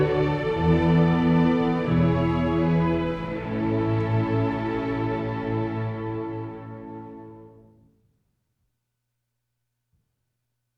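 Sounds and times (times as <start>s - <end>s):
orchestral suite in D: 0.0s - 7.8s.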